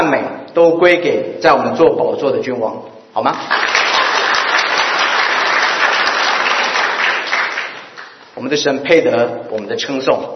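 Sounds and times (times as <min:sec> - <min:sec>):
speech: 0:00.6 - 0:03.8, 0:08.5 - 0:10.3
audience applause: 0:03.4 - 0:08.2.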